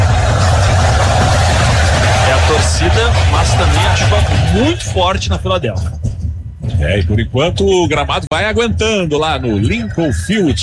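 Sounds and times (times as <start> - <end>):
heavy rain pouring at a stadium: 0.0 - 4.9
deep steady rumble: 0.0 - 10.6
speech: 3.4 - 6.1, 6.8 - 10.6.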